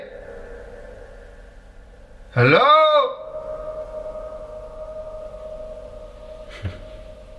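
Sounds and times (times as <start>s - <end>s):
speech: 2.4s - 2.8s
grand piano strings resonating with sympathetic reverb: 3.0s - 7.3s.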